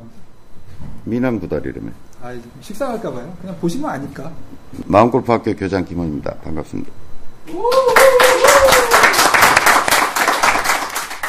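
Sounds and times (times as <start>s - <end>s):
speech: 1.0s - 8.8s
hand clapping: 7.5s - 11.2s.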